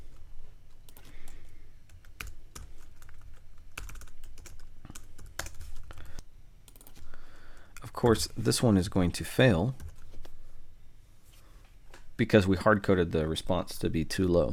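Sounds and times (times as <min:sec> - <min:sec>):
typing on a computer keyboard: 0:00.9 - 0:07.0
speech: 0:08.0 - 0:09.8, 0:12.2 - 0:14.5.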